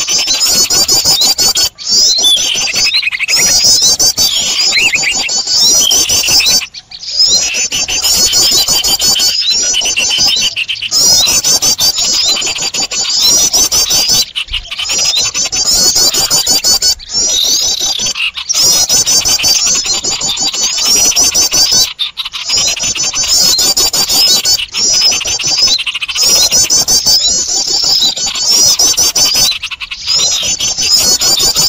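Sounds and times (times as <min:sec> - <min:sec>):
flock of birds twittering and chirping: 0:00.0 - 0:31.6.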